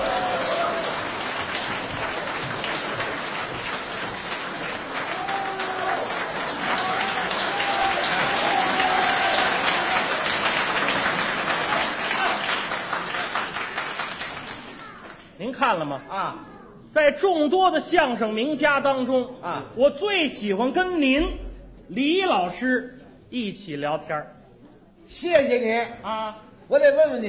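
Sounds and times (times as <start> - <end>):
audience applauding crosstalk comedians onto a stage: 0.0 - 15.3
speech: 15.7 - 24.4, 25.1 - 27.2.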